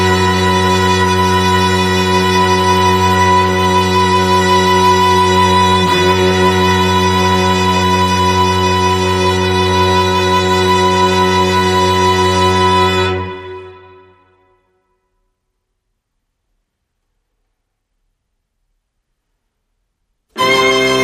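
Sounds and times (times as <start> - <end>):
strings playing: 0.0 - 14.4, 20.3 - 21.0.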